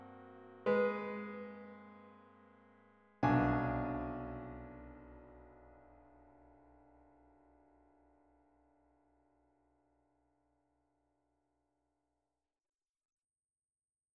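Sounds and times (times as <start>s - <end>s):
piano: 0.0s - 8.2s.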